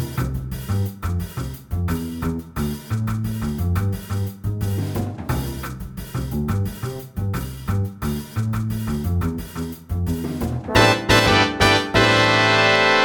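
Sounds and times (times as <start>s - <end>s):
Latin jazz band playing: 0.0s - 13.0s
guitar playing Latin jazz: 10.7s - 13.0s.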